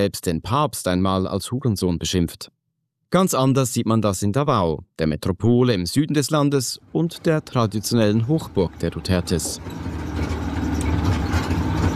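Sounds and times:
speech: 0.0s - 10.4s
red motorcycle tricycle with metal sidecar engine droning over gravel roads: 7.2s - 11.9s.

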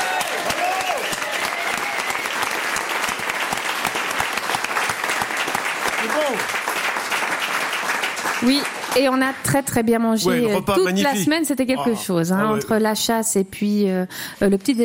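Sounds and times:
audience applause: 0.0s - 9.4s
speech: 8.4s - 14.8s.

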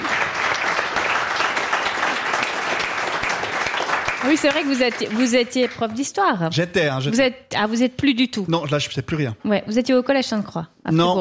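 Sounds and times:
audience clapping: 0.0s - 6.1s
speech: 4.2s - 11.2s.

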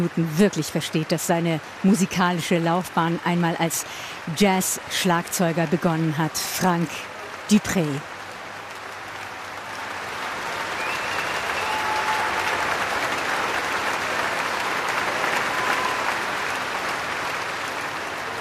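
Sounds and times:
speech: 0.0s - 8.1s
audience cheering soloist and orchestra: 8.3s - 18.4s.

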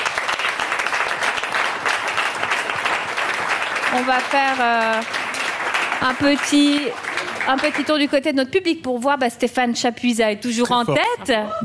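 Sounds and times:
audience applause: 0.0s - 8.2s
speech: 3.9s - 5.2s, 6.0s - 11.6s.

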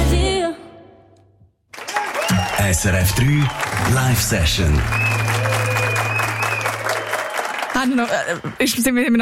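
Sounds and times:
canned applause track: 1.7s - 9.0s
speech: 2.6s - 5.2s, 7.8s - 9.2s.

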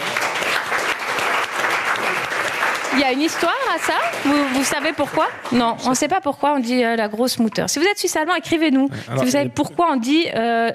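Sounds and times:
audience applause: 0.0s - 6.0s
speech: 3.0s - 10.7s.

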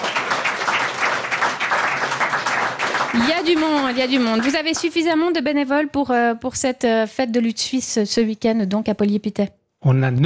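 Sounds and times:
audience applause: 0.0s - 5.0s
speech: 3.1s - 10.2s.

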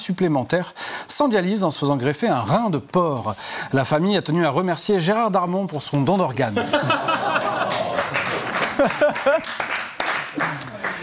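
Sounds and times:
speech: 0.0s - 7.5s, 8.8s - 9.7s
laughter: 6.5s - 9.7s
applause: 7.4s - 11.0s.

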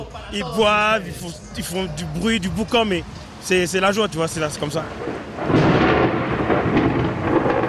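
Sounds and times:
speech: 0.3s - 5.5s
heavy rain: 0.6s - 7.6s
thunder rumbling: 4.5s - 7.6s.

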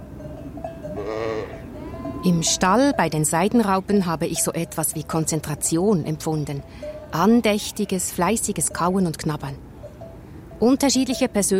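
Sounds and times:
ewe calling for her lamb: 1.0s - 2.8s
speech: 2.2s - 9.7s, 10.6s - 11.5s.

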